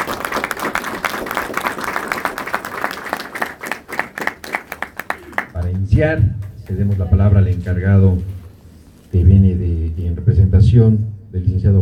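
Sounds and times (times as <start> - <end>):
crowd applauding: 0.0 - 8.6
speech: 6.0 - 8.4, 9.1 - 9.5, 10.7 - 11.8.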